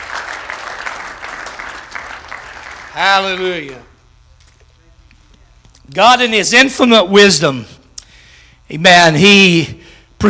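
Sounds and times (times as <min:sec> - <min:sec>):
audience applause, hand clapping: 0:00.0 - 0:04.0
speech: 0:02.9 - 0:03.9, 0:05.9 - 0:07.8, 0:08.7 - 0:10.2.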